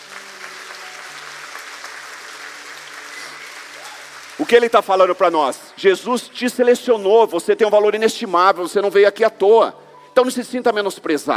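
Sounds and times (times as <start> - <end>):
audience applauding: 0.0 - 6.1
speech: 4.4 - 11.3.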